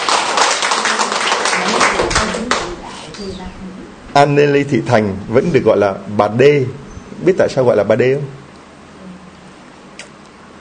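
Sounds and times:
audience applause: 0.0 - 2.7
speech: 3.2 - 8.4.

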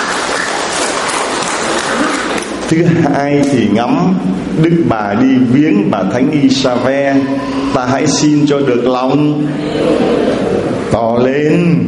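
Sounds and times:
Catholic congregation applause during a rosary prayer: 0.0 - 2.7
speech: 2.7 - 11.8.

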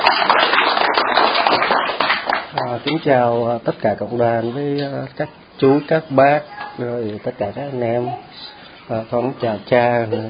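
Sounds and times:
congregation clapping at a church gathering: 0.0 - 3.0
speech: 2.7 - 10.2.

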